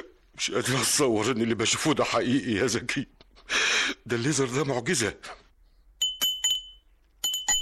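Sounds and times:
speech: 0:00.6 - 0:03.2, 0:04.1 - 0:05.4
doorbell ringing with bright metallic chiming tones: 0:06.0 - 0:07.6.

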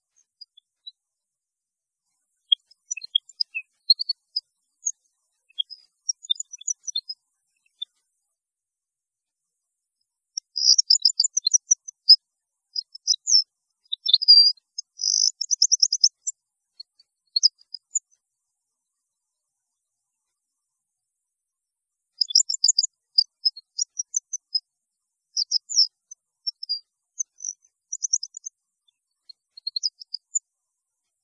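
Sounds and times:
European goldfinch song: 0:00.0 - 0:01.0, 0:02.1 - 0:08.1, 0:10.3 - 0:18.2, 0:22.2 - 0:24.7, 0:25.3 - 0:30.4.

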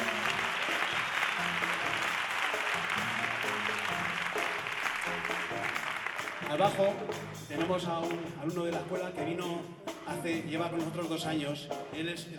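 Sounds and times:
theatre concert audience applauding a pianist: 0:00.0 - 0:07.5
speech: 0:06.5 - 0:12.3.

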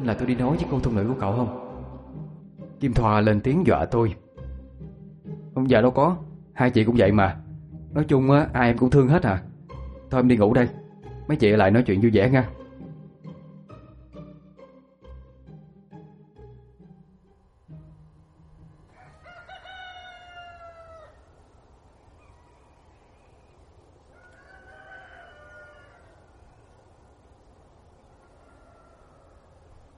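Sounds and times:
speech: 0:00.0 - 0:01.7, 0:02.8 - 0:04.2, 0:05.6 - 0:09.5, 0:10.1 - 0:12.6
jungle fowl rooster crowing: 0:18.7 - 0:21.5, 0:24.0 - 0:26.8, 0:28.0 - 0:29.9.

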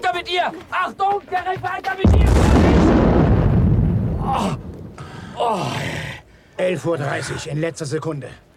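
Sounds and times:
speech: 0:00.2 - 0:03.0, 0:04.3 - 0:04.7, 0:05.4 - 0:08.5
deep heavy explosion rumble: 0:02.1 - 0:05.2
strained gasps or groans from a voice: 0:04.9 - 0:06.6.

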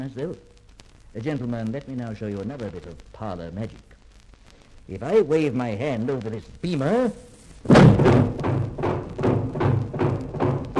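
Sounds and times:
speech: 0:00.0 - 0:00.6, 0:01.2 - 0:03.9, 0:04.9 - 0:08.3
heavy steel shutters slamming down over doors and windows: 0:07.7 - 0:10.7.

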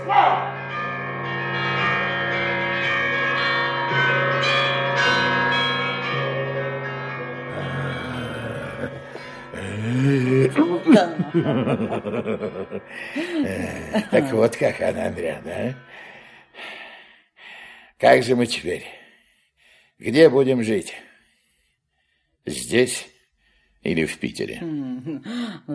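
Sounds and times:
church bells ringing: 0:00.0 - 0:17.0
people chuckling: 0:07.5 - 0:16.2
speech: 0:11.0 - 0:16.0, 0:18.0 - 0:19.0, 0:20.0 - 0:21.1, 0:22.4 - 0:23.1, 0:23.8 - 0:25.7.

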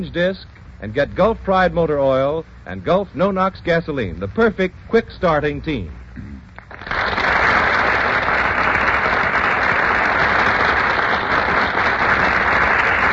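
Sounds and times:
speech: 0:00.0 - 0:06.4
burst of applause: 0:06.6 - 0:13.1.

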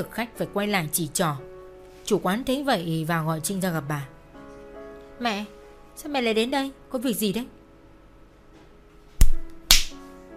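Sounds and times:
speech: 0:00.0 - 0:01.5, 0:02.1 - 0:04.2, 0:05.2 - 0:07.6
hard slap across the face: 0:09.2 - 0:10.0.

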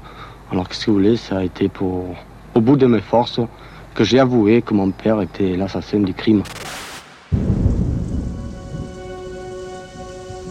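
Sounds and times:
speech: 0:00.5 - 0:07.5
torrential rain: 0:06.5 - 0:10.5
thunder: 0:07.3 - 0:10.5.

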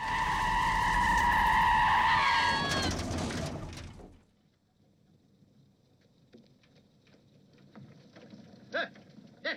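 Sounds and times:
car skidding to a stop with tire screech: 0:00.0 - 0:04.2.

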